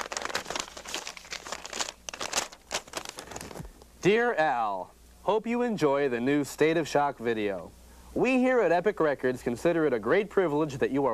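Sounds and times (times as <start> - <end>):
paper letter being unfolded: 0.0 - 3.8
speech: 4.0 - 11.1.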